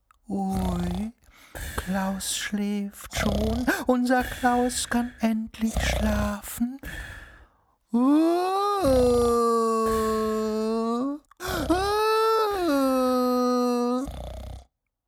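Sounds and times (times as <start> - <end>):
speech: 1.9 - 7.1, 7.9 - 10.0
person voicing a crocodile crying: 8.0 - 14.1.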